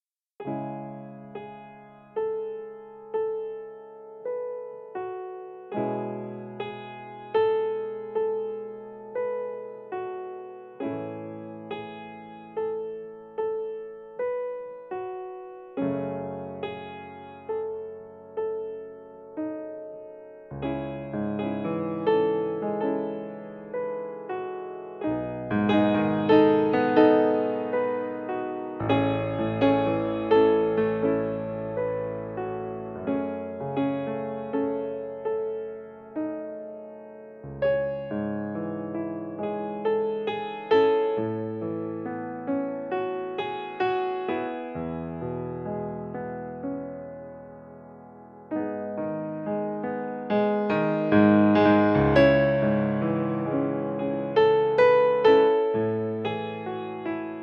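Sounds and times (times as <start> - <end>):
piano: 0.0 - 57.4.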